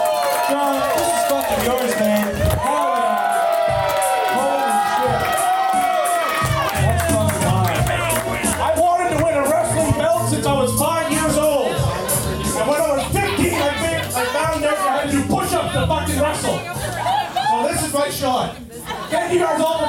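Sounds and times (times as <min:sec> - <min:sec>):
crowd cheering with shouts and whoops: 0:00.0 - 0:08.8, 0:10.4 - 0:14.8
crowd clapping: 0:00.0 - 0:09.4
speech: 0:00.5 - 0:00.9
laughter: 0:07.1 - 0:19.8.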